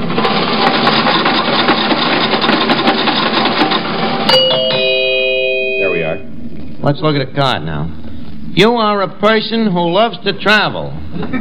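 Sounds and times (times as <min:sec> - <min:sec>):
fortune card machine rattling and whirring: 0:00.0 - 0:04.3
brief ringing tone: 0:04.3 - 0:06.3
speech: 0:06.8 - 0:11.4.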